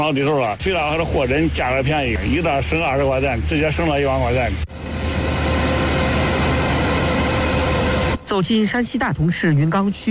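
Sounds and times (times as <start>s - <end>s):
speech: 0.0s - 4.9s, 8.3s - 10.0s
combine harvester working at full power in a corn field in Datong Shanxi: 4.7s - 8.4s.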